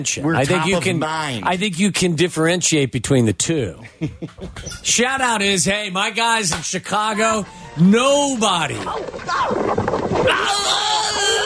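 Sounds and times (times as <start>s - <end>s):
speech: 0.0s - 11.4s
person screaming on a treadmill: 10.2s - 11.4s.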